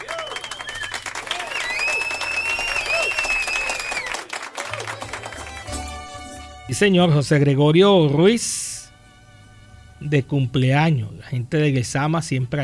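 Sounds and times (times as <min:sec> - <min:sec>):
applause for a birthday greeting: 0:00.0 - 0:06.4
speech: 0:06.7 - 0:08.6, 0:10.1 - 0:12.6.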